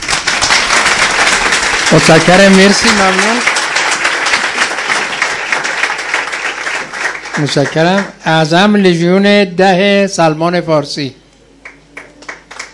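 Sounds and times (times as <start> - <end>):
audience applause: 0.0 - 8.2, 11.6 - 12.7
speech: 1.9 - 3.6, 7.4 - 11.2.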